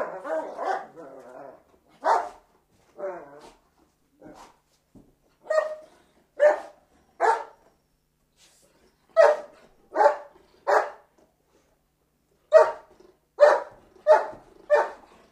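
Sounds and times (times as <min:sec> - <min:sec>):
dog barking: 0:00.0 - 0:01.0, 0:02.0 - 0:02.4, 0:05.4 - 0:07.6, 0:09.2 - 0:11.1, 0:12.5 - 0:15.1.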